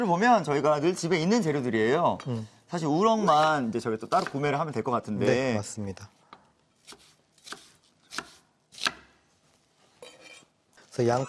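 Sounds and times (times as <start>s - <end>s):
speech: 0.0s - 6.2s, 11.0s - 11.2s
knife chopping vegetables on a cutting board: 6.8s - 9.1s.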